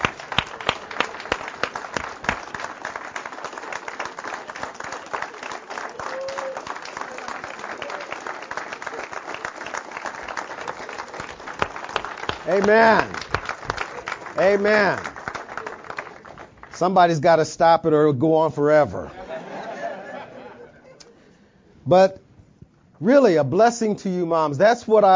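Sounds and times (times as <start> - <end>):
audience applause: 0.0 - 17.0
speech: 12.5 - 13.2, 14.4 - 15.1, 16.8 - 19.2, 21.9 - 22.2, 23.0 - 25.1
laughter: 19.0 - 21.3.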